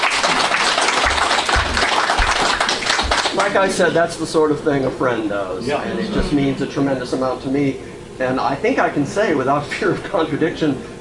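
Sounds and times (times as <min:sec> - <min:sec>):
crowd applause: 0:00.0 - 0:03.8
speech: 0:03.4 - 0:10.9.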